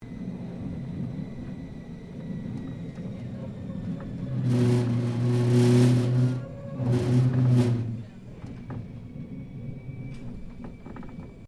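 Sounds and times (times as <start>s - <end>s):
interior of a Melbourne W Class tram moving and rattling: 0.0s - 11.4s.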